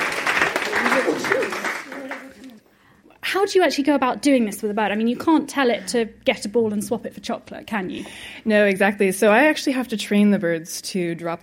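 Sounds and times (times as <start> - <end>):
small group clapping: 0.0 - 2.7
speech: 3.4 - 11.4.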